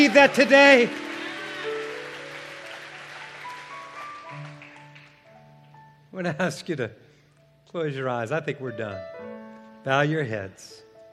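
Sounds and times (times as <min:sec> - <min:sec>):
speech: 0:00.0 - 0:01.1, 0:06.2 - 0:07.0, 0:07.7 - 0:09.1, 0:09.8 - 0:10.8
audience applauding: 0:00.0 - 0:05.3.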